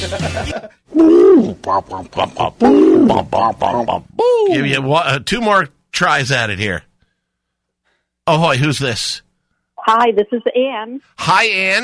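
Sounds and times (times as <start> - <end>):
laughter: 0.0 - 0.9
speech: 0.0 - 6.9, 8.3 - 9.2, 9.8 - 11.8
man imitating a pigeon cooing: 0.9 - 4.7.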